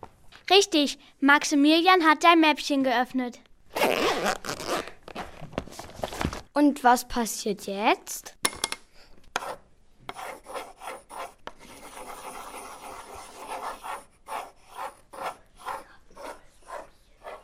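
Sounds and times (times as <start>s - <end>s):
speech: 0.5s - 4.5s, 6.6s - 8.4s
pencil scratching on paper: 9.4s - 17.4s.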